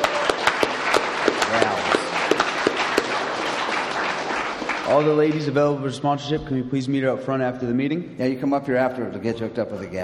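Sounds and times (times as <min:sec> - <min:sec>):
crowd clapping: 0:00.0 - 0:06.0
speech: 0:04.9 - 0:10.0.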